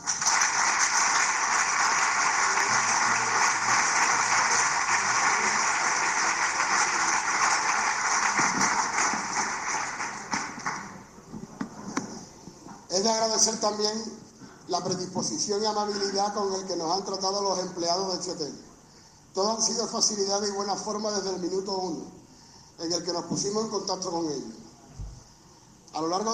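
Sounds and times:
audience applause: 0.0s - 11.1s
speech: 13.0s - 18.7s, 19.4s - 22.2s, 22.8s - 24.6s, 26.0s - 26.3s.

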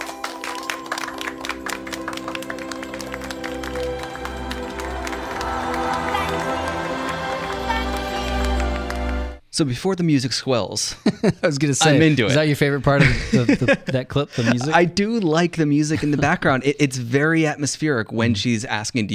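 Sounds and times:
audience clapping hands: 0.0s - 9.4s
speech: 9.6s - 19.1s
laughter: 10.9s - 14.9s, 15.9s - 16.5s.

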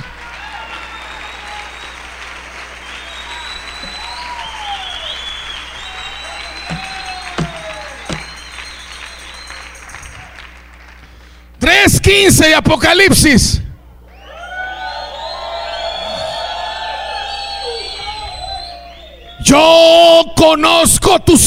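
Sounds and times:
audience applause: 0.0s - 11.3s, 14.1s - 19.2s
speech: 12.0s - 13.6s, 19.5s - 21.4s.

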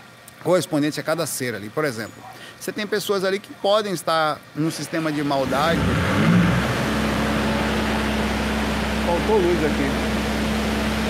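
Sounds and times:
speech: 0.4s - 6.3s, 9.1s - 10.2s
building backup generator running: 4.6s - 11.0s.

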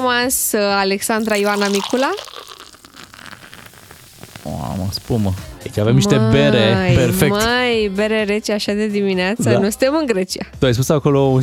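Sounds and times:
speech: 0.0s - 2.5s, 4.9s - 11.4s
ice cubes poured into a glass: 1.2s - 5.1s.

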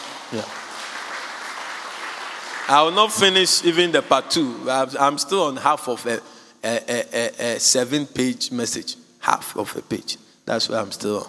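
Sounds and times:
audience clapping: 0.0s - 4.6s
speech: 0.3s - 0.6s, 2.7s - 11.2s.

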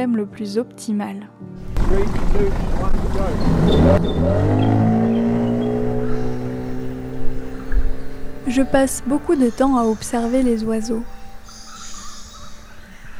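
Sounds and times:
speech: 0.0s - 5.0s, 8.4s - 11.2s
new outboard motor running at speed: 1.8s - 8.6s.

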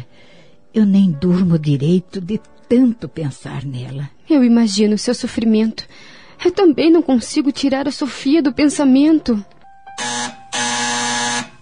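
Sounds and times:
speech: 0.7s - 10.2s
electric doorbell buzzing: 10.0s - 11.6s.

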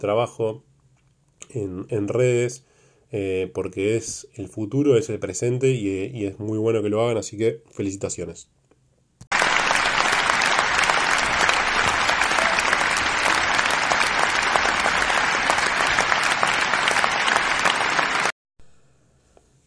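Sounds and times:
speech: 0.0s - 0.7s, 1.5s - 8.6s
applause: 9.3s - 18.4s.

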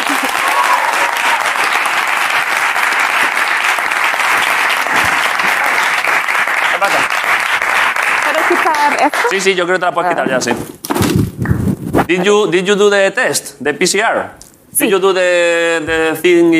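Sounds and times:
crowd whooping: 0.0s - 2.2s
crowd applauding: 0.0s - 9.5s
speech: 6.8s - 7.1s, 8.8s - 10.8s, 12.1s - 16.5s.

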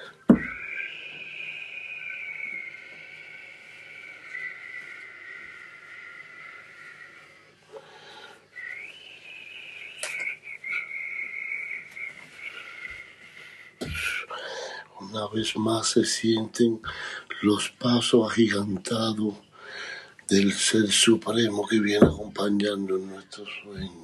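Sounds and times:
voice imitating a sea breeze with a breathy whistle: 0.0s - 14.4s
sharp clicks: 10.0s - 10.4s
speech: 15.1s - 19.5s, 20.3s - 24.0s.

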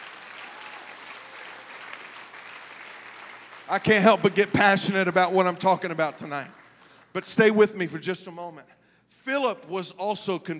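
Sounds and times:
audience clapping: 0.0s - 7.7s
speech: 3.7s - 10.5s.

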